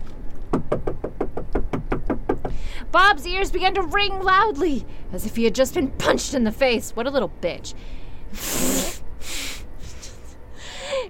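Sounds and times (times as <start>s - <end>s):
rapid knocking on a bathroom door in a panic: 0.5s - 2.6s
speech: 2.9s - 8.9s.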